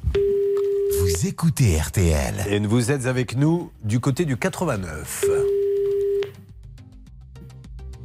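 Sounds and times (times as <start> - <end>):
telephone call ringing tone: 0.2 - 1.0, 5.2 - 6.3
speech: 1.2 - 5.5
rhythmic music with regular ticking beats: 5.1 - 8.0.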